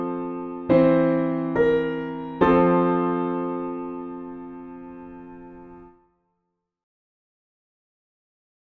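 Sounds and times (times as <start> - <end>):
piano backing playing hymns: 0.0 - 6.0.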